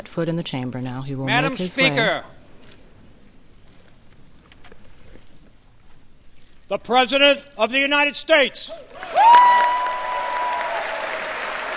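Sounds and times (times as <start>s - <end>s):
speech: 0.2s - 2.4s, 6.7s - 9.6s
round of applause in chamber of Congress: 8.9s - 11.7s.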